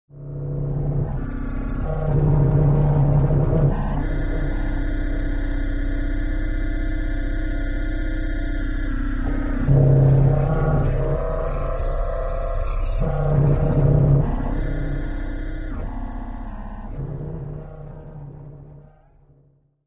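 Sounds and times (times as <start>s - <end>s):
thriller-horror ambience sound: 0.1s - 19.4s.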